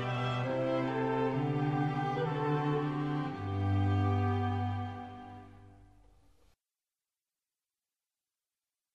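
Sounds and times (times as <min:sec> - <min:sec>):
string quartet second movement: 0:00.0 - 0:05.9.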